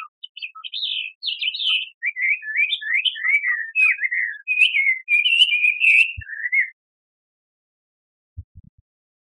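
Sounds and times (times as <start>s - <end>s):
bird twittering and chirping: 0.0s - 6.8s.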